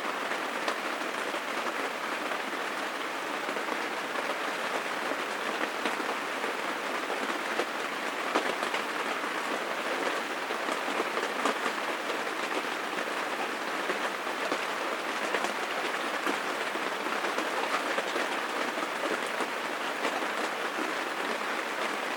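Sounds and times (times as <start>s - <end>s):
rain on a tent: 0.0s - 22.1s.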